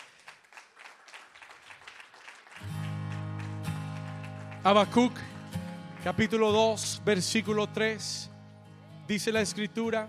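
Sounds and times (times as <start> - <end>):
audience applauding: 0.0 - 7.0
speech: 4.6 - 5.3, 6.0 - 8.3, 9.1 - 10.0.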